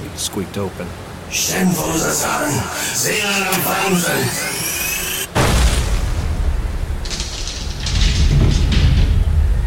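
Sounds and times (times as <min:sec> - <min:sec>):
speech: 0:00.2 - 0:04.8
incandescent magical glyphs exploding: 0:03.9 - 0:09.6.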